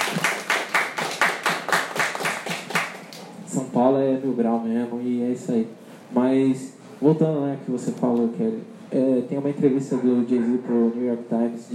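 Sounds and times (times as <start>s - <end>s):
steady hand clapping for a guest: 0.0s - 3.3s
speech: 3.8s - 11.7s.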